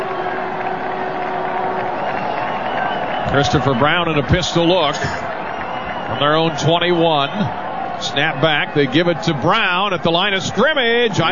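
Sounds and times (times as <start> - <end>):
stadium crowd cheering: 0.0 - 11.3
speech: 3.3 - 5.3, 6.1 - 11.3.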